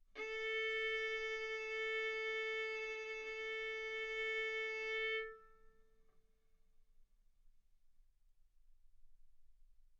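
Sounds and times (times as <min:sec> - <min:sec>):
violin arco on A string: 0:00.2 - 0:05.6.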